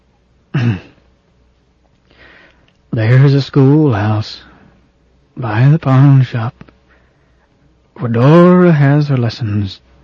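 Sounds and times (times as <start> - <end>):
man clearing throat: 0.5 - 1.0
speech: 3.0 - 4.5, 5.4 - 6.7, 8.0 - 9.9.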